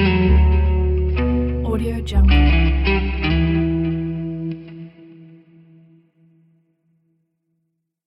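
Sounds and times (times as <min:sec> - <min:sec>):
jazz music: 0:00.0 - 0:04.6.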